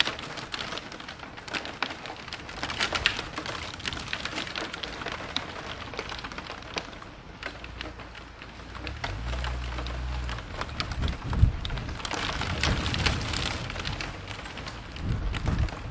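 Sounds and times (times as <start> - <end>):
rain in a city: 0.0 - 15.8
thunder: 8.8 - 15.8.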